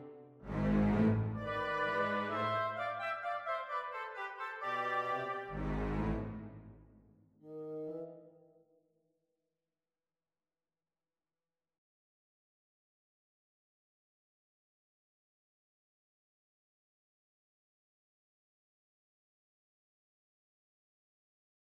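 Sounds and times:
concerto music: 0:00.0 - 0:06.7.

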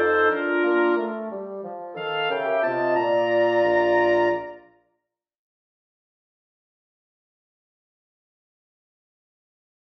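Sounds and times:
short piece for wind quartet in B flat: 0:00.0 - 0:04.6.

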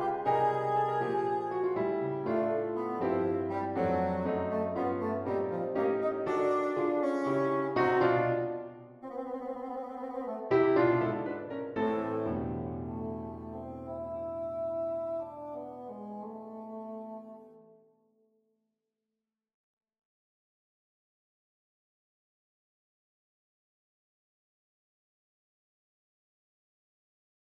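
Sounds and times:
solo piano allegro: 0:00.0 - 0:09.0, 0:10.3 - 0:17.2.

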